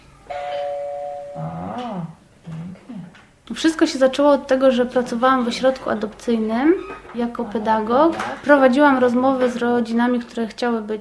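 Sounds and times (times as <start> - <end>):
electronic doorbell chiming: 0.3 - 1.6
speech: 3.5 - 10.9.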